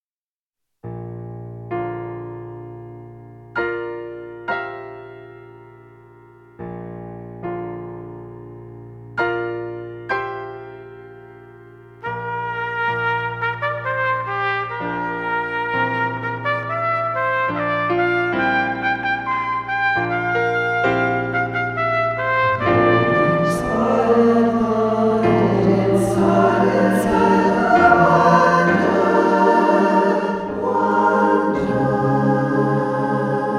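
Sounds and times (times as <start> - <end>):
piano: 0.8 - 33.5
trumpet: 12.0 - 31.4
SSAATTBB choir: 22.3 - 33.5.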